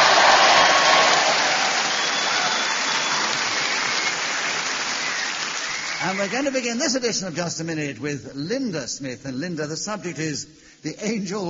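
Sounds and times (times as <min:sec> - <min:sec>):
live Geordie audience cheering and applauding: 0:00.0 - 0:07.4
speech: 0:06.1 - 0:11.4.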